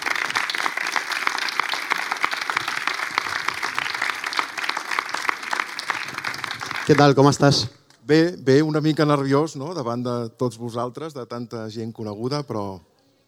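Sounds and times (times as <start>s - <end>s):
audience applause: 0.0s - 7.7s
speech: 6.9s - 12.9s.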